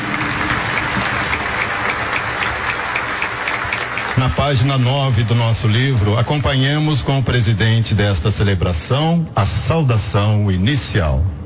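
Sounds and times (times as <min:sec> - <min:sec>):
crowd applauding: 0:00.0 - 0:07.8
speech: 0:04.5 - 0:11.4.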